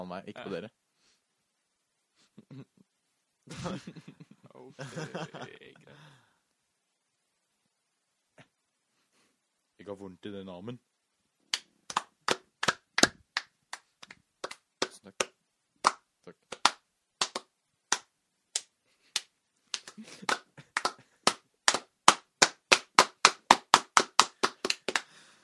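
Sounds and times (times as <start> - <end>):
speech: 0.1 - 0.8, 2.4 - 2.8, 3.5 - 6.2, 9.8 - 10.9, 15.0 - 15.2
laughter: 3.5 - 6.0, 19.8 - 21.2
hand clapping: 11.5 - 25.1.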